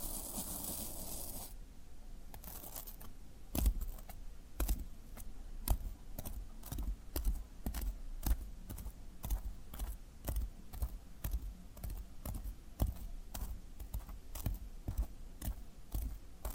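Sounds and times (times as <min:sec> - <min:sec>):
floral foam crunching and snapping: 0:00.0 - 0:01.6
faint steady hiss: 0:00.0 - 0:16.5.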